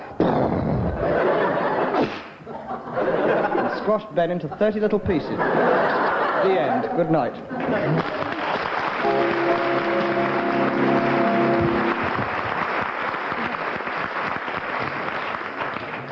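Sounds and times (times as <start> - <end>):
laughter: 0.9 - 4.0, 5.3 - 9.2
speech: 3.9 - 8.2
audience applause: 7.8 - 16.1.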